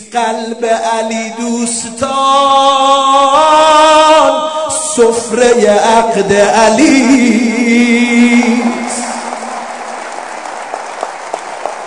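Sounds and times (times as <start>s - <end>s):
speech: 0.1s - 8.7s
audience clapping at a wedding celebration: 8.2s - 11.8s.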